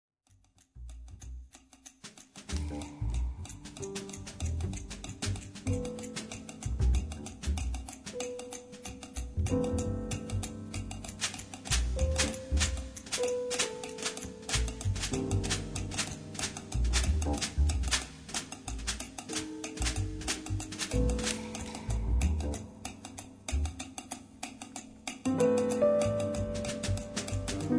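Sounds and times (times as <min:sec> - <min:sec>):
funk music: 0:02.5 - 0:23.9, 0:25.2 - 0:27.7.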